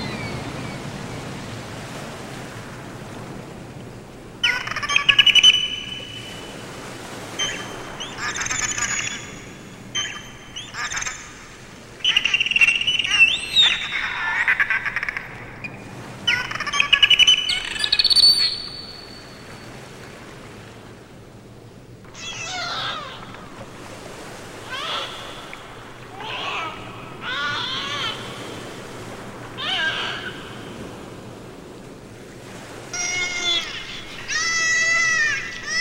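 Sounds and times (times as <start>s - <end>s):
dolphins vocalizing: 4.4s - 19.5s, 22.1s - 31.1s, 32.9s - 35.7s.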